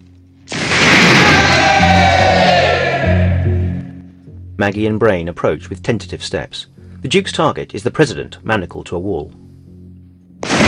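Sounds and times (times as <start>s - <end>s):
crowd cheering in a large warehouse building: 1.0s - 3.7s
speech: 4.6s - 9.4s.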